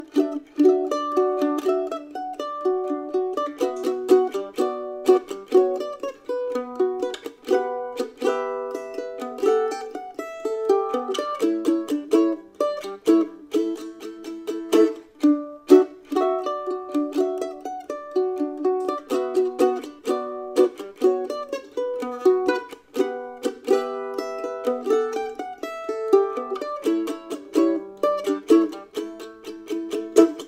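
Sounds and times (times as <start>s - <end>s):
mandolin: 0.0s - 30.4s.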